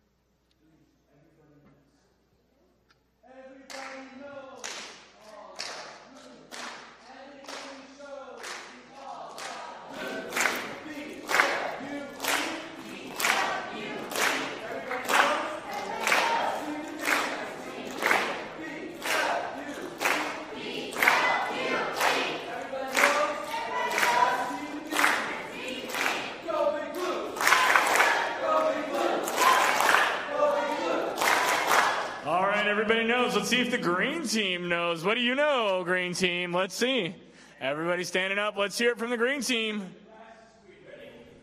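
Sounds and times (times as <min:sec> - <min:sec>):
blue team shouting a cheer: 0:09.0 - 0:32.2
speech: 0:33.3 - 0:40.0.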